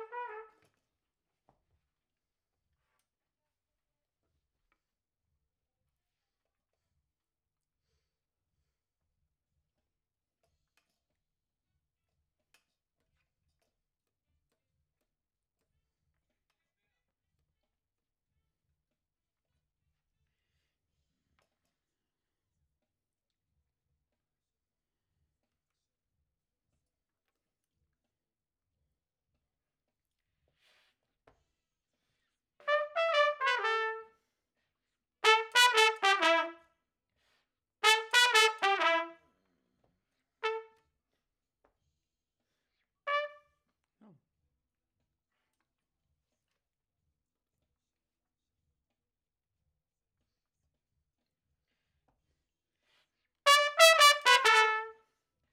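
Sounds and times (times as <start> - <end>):
trumpet: 0.0 - 0.8, 32.6 - 34.2, 35.2 - 36.7, 37.8 - 39.2, 40.4 - 40.8, 43.1 - 43.5, 53.5 - 55.0.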